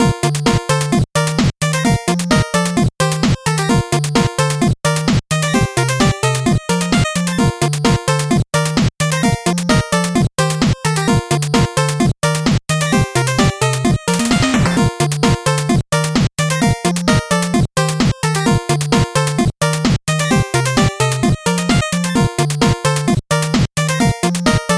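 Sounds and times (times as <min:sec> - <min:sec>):
slow 8-bit background music: 0:00.0 - 0:24.7.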